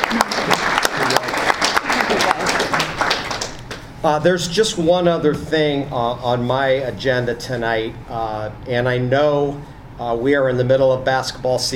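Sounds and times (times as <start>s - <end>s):
audience applause: 0.0s - 3.7s
speech: 4.0s - 11.7s.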